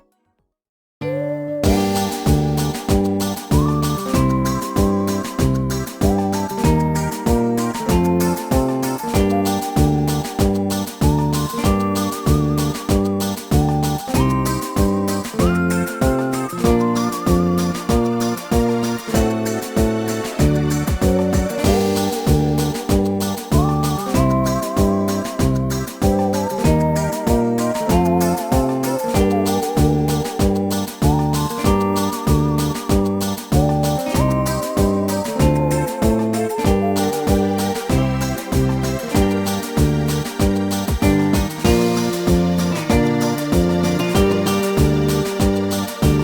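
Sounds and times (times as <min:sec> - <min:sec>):
game map music: 0:01.6 - 0:46.2.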